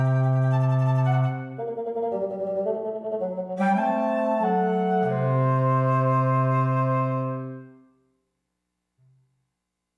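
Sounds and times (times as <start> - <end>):
wind trio playing: 0.0 - 7.8.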